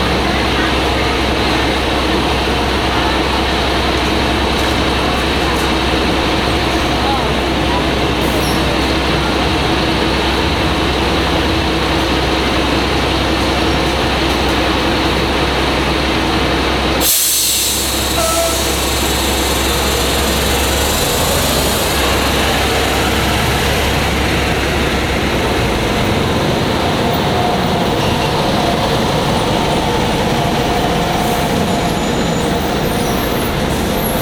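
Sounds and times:
bus stopping and starting at a bus terminal: 0.0 - 34.2
street traffic: 0.0 - 34.2.

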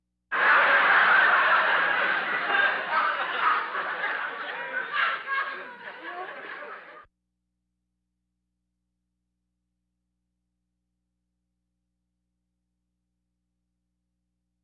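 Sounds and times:
audience laughter: 0.3 - 7.1.

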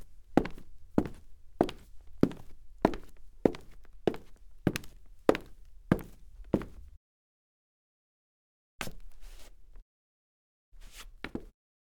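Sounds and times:
soft Foley footsteps on wood: 0.4 - 6.8.

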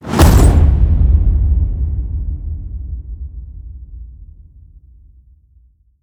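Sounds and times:
cinematic metal crash hit: 0.0 - 3.2.

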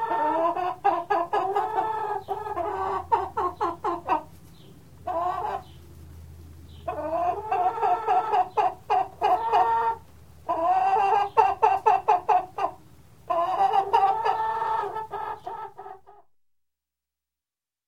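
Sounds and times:
chicken clucking: 0.0 - 16.2.

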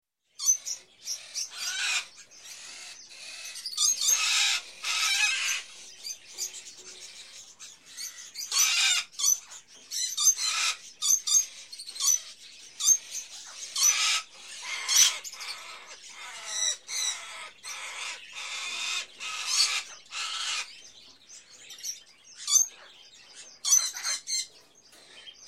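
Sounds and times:
chorus of various small birds chirping in a pet shop: 0.2 - 25.4.

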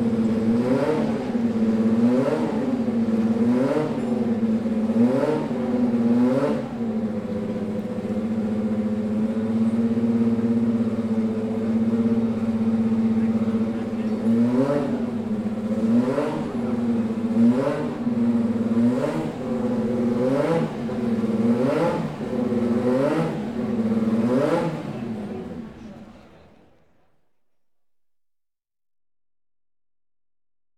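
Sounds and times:
car race general ambience: 0.0 - 27.2.

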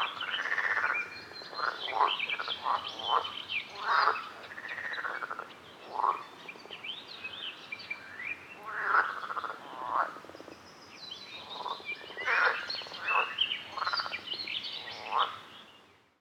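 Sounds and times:
frogs at a lake: 0.0 - 6.3, 8.6 - 10.4, 11.4 - 14.2, 14.8 - 15.4.

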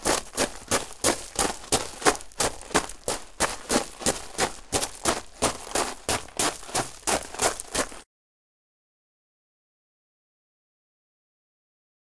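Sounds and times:
foley footsteps on gravel: 0.0 - 8.0.

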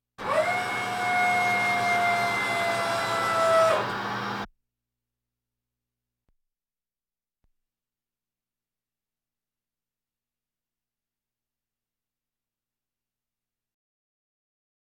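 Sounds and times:
military vehicles: 0.2 - 4.5.

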